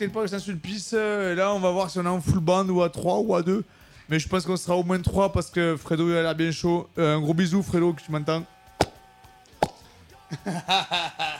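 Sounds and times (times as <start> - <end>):
speech: 0.0 - 8.6, 10.4 - 11.3
cork popping from a bottle of cheap red wine: 8.8 - 9.0, 9.6 - 9.9
laughter: 10.2 - 11.3.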